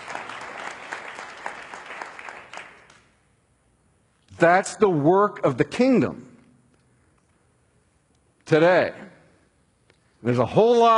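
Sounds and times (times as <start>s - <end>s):
audience applause: 0.0s - 3.0s
speech: 4.4s - 6.3s, 8.5s - 9.1s, 10.2s - 10.9s.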